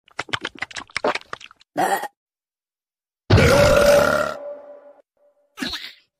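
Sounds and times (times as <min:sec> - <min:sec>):
person burping: 0:01.8 - 0:02.2, 0:03.3 - 0:04.7.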